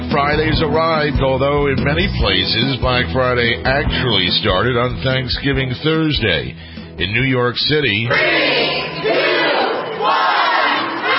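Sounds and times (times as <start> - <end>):
speech: 0.1 - 9.1
crowd of shoppers shouting a countdown: 8.1 - 11.1.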